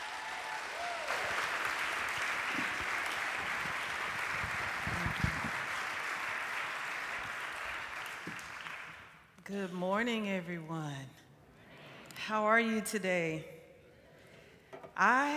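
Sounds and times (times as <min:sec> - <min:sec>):
audience applause welcoming a speaker to the stage: 0:00.0 - 0:09.2
speech: 0:09.5 - 0:11.2, 0:12.3 - 0:13.6, 0:15.0 - 0:15.3.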